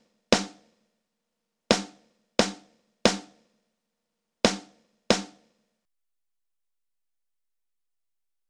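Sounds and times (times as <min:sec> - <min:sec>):
drums: 0:00.0 - 0:00.8, 0:01.7 - 0:03.6, 0:04.4 - 0:05.6.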